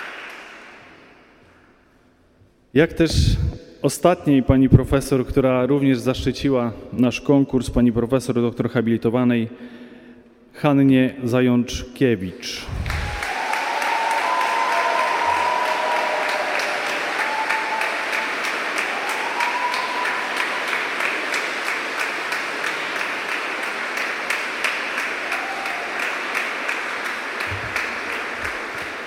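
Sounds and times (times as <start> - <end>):
sustained audience applause: 0.0 - 0.9, 12.8 - 29.0
speech: 2.7 - 9.8, 10.6 - 12.9
faint voices and cheers: 12.8 - 20.8, 25.3 - 26.1.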